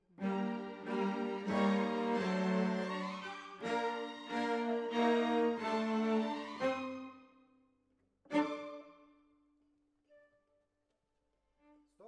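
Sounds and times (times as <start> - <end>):
cellos playing: 0.1 - 7.2, 8.3 - 9.0.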